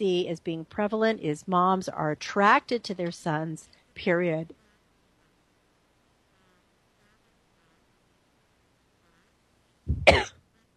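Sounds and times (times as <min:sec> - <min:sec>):
speech: 0:00.0 - 0:04.6
speaker coughing: 0:09.9 - 0:10.3.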